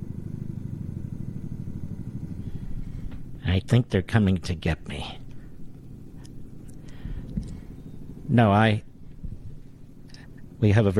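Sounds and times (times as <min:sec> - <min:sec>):
helicopter rotor thumping: 0:00.0 - 0:10.7
speech: 0:03.5 - 0:05.2, 0:08.3 - 0:08.9, 0:10.6 - 0:10.9.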